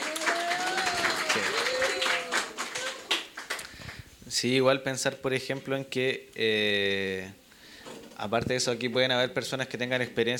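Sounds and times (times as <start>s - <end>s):
audience applause for a speaker at a university forum: 0.0s - 4.0s
speech: 4.4s - 7.4s, 8.2s - 10.3s.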